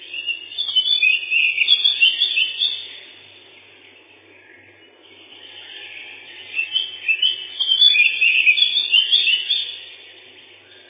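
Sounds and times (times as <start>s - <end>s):
Lesser whitethroat Sylvia curruca song: 0.0s - 10.8s.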